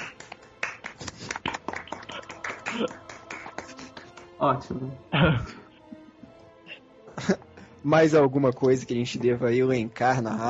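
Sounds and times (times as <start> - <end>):
people clapping: 0.0 - 4.4
speech: 2.8 - 3.0, 4.4 - 5.6, 7.3 - 10.4.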